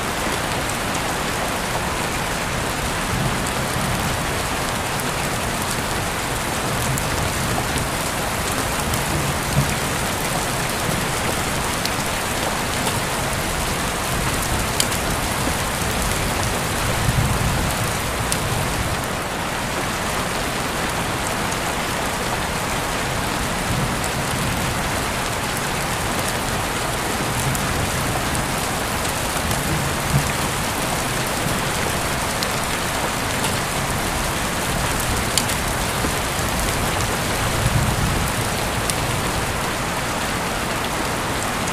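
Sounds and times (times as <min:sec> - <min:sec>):
rain: 0:00.0 - 0:41.7.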